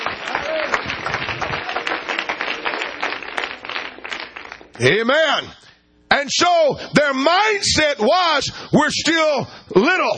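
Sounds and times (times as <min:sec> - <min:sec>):
audience clapping hands: 0:00.0 - 0:04.8
speech: 0:04.8 - 0:10.1.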